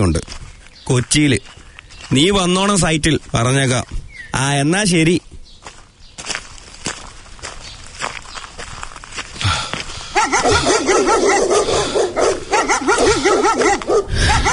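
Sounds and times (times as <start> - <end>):
speech: 0.0 - 5.3
dogs barking near a house in the morning: 10.0 - 14.5.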